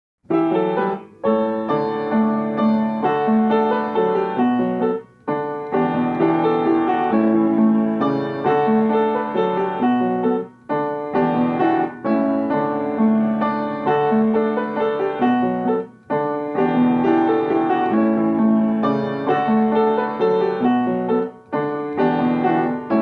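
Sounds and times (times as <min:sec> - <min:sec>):
instrumental waltz: 0:00.3 - 0:23.0.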